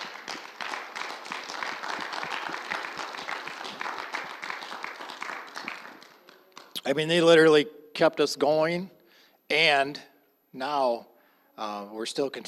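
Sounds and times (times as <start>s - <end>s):
audience applause: 0.0s - 6.8s
speech: 6.8s - 12.4s.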